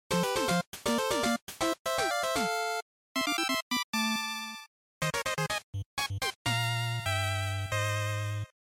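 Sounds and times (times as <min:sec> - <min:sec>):
Game Boy action background music: 0:00.1 - 0:08.5.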